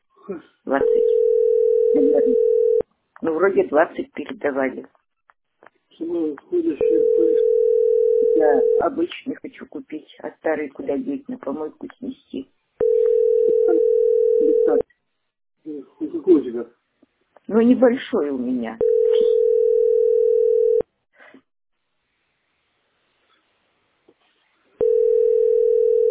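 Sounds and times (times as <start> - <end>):
speech: 0.3 - 2.6, 3.2 - 5.0, 6.0 - 7.6, 8.4 - 13.0, 13.7 - 14.9, 15.6 - 16.8, 17.5 - 19.0
steady telephone dial tone, call not connecting: 0.8 - 2.8, 6.8 - 8.8, 12.8 - 14.8, 18.8 - 20.8, 24.8 - 26.0.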